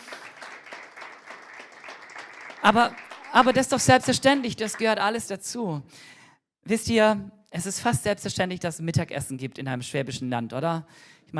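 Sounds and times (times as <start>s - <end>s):
audience applause: 0.0s - 5.2s
speech: 2.6s - 11.3s.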